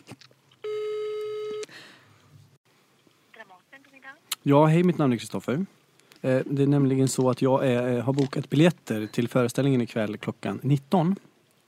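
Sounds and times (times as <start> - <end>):
telephone call tone: 0.6 - 1.7
speech: 4.4 - 11.3.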